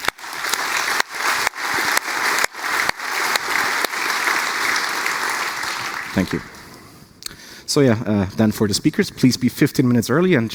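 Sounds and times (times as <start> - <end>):
audience applause: 0.0 - 6.9
speech: 6.2 - 6.5, 7.7 - 10.5.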